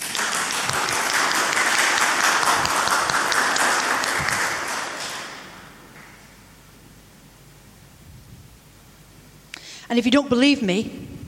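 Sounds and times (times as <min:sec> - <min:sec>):
audience applause: 0:00.0 - 0:06.2
speech: 0:09.9 - 0:11.1.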